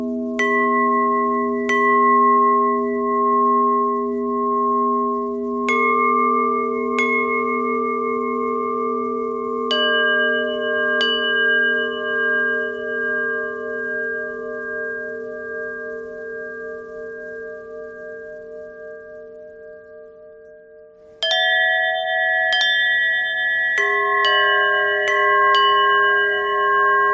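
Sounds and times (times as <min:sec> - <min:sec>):
bells: 0:00.0 - 0:27.1.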